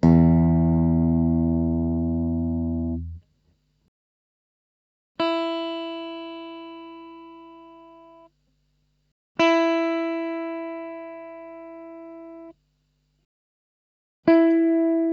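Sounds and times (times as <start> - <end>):
electric guitar: 0.0 - 3.2, 5.2 - 8.2, 9.4 - 12.5, 14.2 - 15.1.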